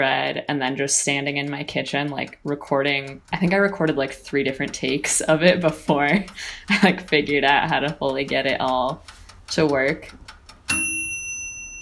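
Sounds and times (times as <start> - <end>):
speech: 0.0 - 10.8
brand-new toaster oven ding while toasting sourdough bread: 10.7 - 11.8.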